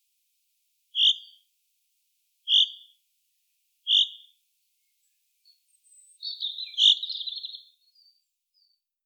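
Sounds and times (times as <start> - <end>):
Fringilla coelebs singing: 1.0 - 1.4, 2.5 - 3.0, 3.9 - 4.4, 5.4 - 8.8.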